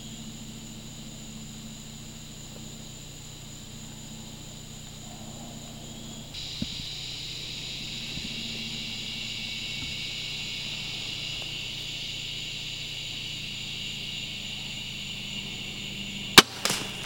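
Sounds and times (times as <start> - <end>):
long steady low hum: 0.0 - 17.0
crossbow bolt with Lumenok lighted nock shot high and ricocheting: 16.4 - 17.0.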